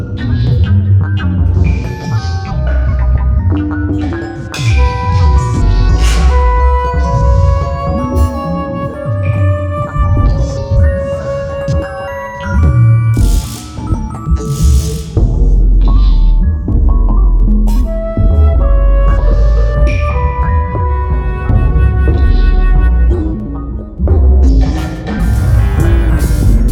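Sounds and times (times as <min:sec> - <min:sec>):
electronic percussion: 0:00.0 - 0:26.6
flute: 0:04.1 - 0:14.3, 0:17.7 - 0:24.2.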